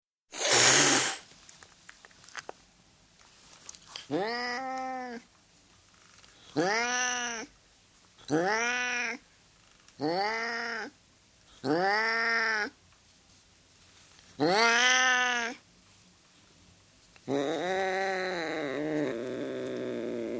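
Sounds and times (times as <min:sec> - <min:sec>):
domestic cat howling: 0:04.1 - 0:05.2, 0:06.6 - 0:07.5, 0:08.3 - 0:09.2, 0:10.0 - 0:11.0, 0:11.6 - 0:12.8, 0:14.4 - 0:15.6, 0:17.3 - 0:20.3.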